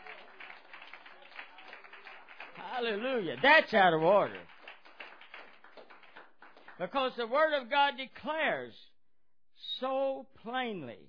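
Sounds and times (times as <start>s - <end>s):
church congregation clapping hands: 0.0s - 7.4s
speech: 2.8s - 4.5s, 6.8s - 8.9s, 9.6s - 11.0s.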